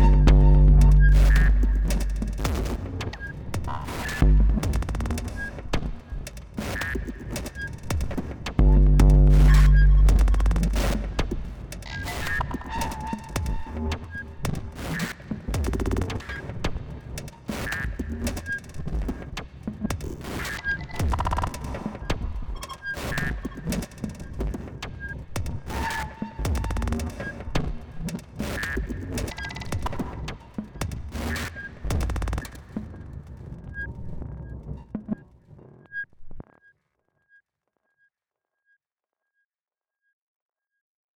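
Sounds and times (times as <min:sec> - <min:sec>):
drum loop: 0:00.0 - 0:24.8, 0:26.4 - 0:32.9.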